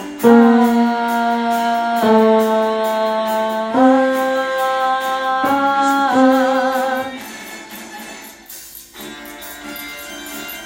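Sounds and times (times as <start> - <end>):
tenor singing: 0.2 - 7.2.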